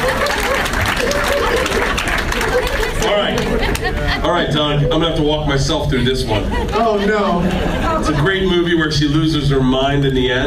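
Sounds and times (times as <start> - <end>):
audience clapping for a game contestant: 0.0 - 4.2
laughter: 0.0 - 9.5
crowd noise: 0.0 - 10.4
speech: 3.2 - 10.4.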